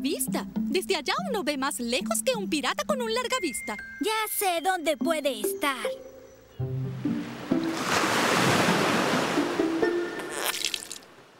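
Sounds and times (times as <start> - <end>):
speech: 0.0 - 6.7
sea waves: 6.6 - 11.3.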